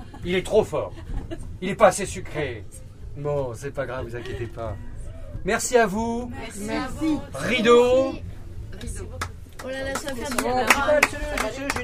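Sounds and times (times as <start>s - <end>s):
low hum: 0.0s - 11.8s
speech: 0.2s - 11.8s
hands clapping: 8.8s - 11.8s.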